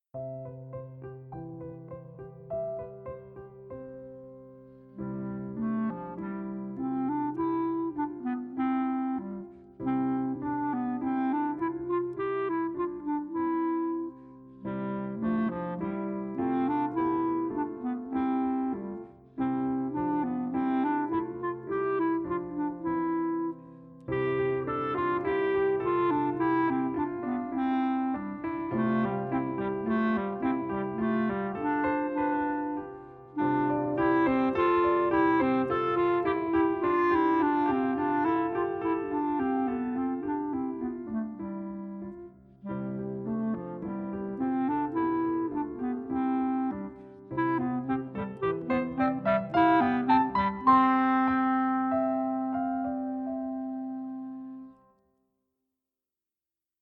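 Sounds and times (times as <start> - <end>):
gavotte: 0.2 - 54.9.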